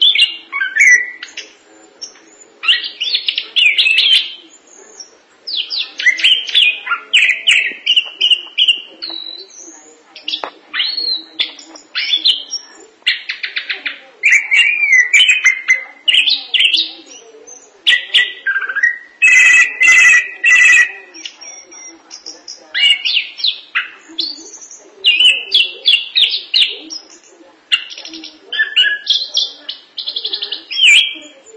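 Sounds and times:
thrush singing: 0.0s - 31.5s.

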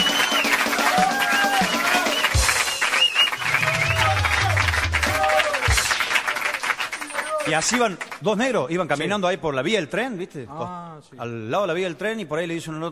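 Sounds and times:
shouts and cheers: 0.0s - 2.5s, 3.4s - 5.8s
crowd applauding: 0.0s - 8.3s
speech: 7.5s - 12.9s.

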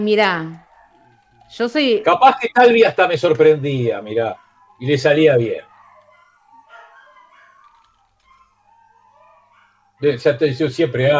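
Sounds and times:
speech: 0.0s - 0.6s, 1.5s - 5.7s, 10.0s - 11.1s
several dogs barking and whining: 0.3s - 11.1s.

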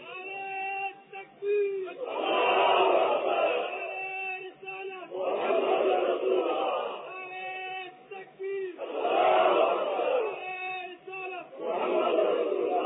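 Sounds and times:
crowd chanting religious slogans: 1.9s - 4.0s, 5.0s - 7.1s, 8.7s - 10.6s, 11.2s - 12.8s.

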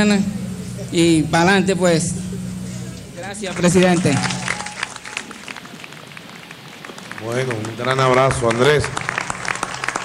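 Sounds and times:
speech: 0.0s - 2.2s, 3.2s - 4.4s, 7.2s - 9.0s
people applauding in a studio: 3.5s - 10.0s.

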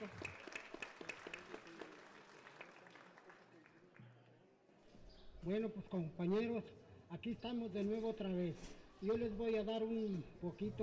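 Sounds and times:
speech: 0.0s - 0.3s, 5.4s - 10.8s
audience applause: 0.0s - 4.0s.

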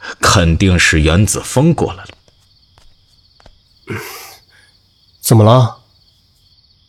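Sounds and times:
speech: 0.4s - 2.2s, 5.3s - 5.8s
light footsteps of a person tiptoeing into a bedroom: 2.0s - 3.8s.

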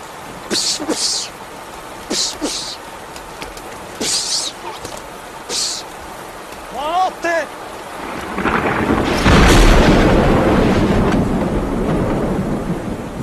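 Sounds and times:
rain: 0.0s - 13.2s
lightning strike: 8.0s - 13.2s
thunder in rain: 8.0s - 13.2s.

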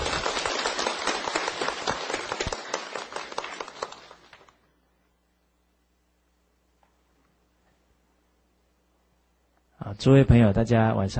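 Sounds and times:
audience applauding warmly: 0.0s - 4.6s
speech: 9.9s - 11.1s.

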